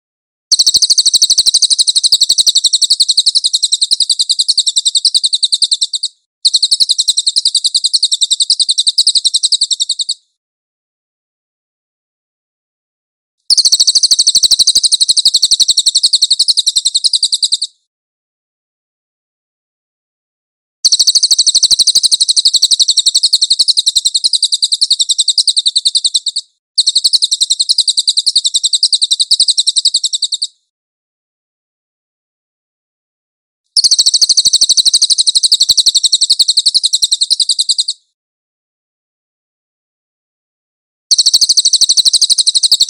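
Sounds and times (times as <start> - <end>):
Cililin trilling: 0.5 - 10.2, 13.5 - 17.7, 20.9 - 30.5, 33.8 - 38.0, 41.1 - 42.8.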